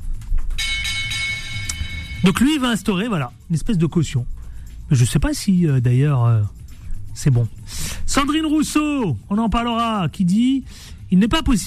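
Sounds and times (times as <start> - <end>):
small bell ringing with bright sustained metallic tone: 0.5 - 3.2
speech: 2.2 - 6.6, 7.2 - 11.6.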